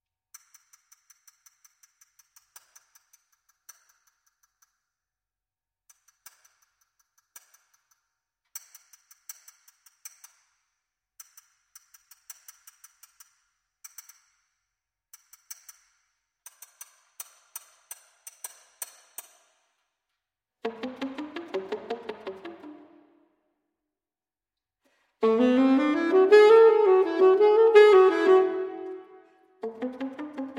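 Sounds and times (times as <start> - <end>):
alto saxophone piece: 20.6 - 23.0, 25.2 - 30.5.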